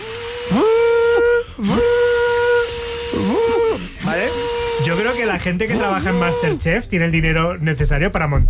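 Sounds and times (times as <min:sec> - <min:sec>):
voice imitating a Minipimer hand blender: 0:00.0 - 0:06.8
speech: 0:00.5 - 0:00.7, 0:01.6 - 0:01.9, 0:05.4 - 0:08.4.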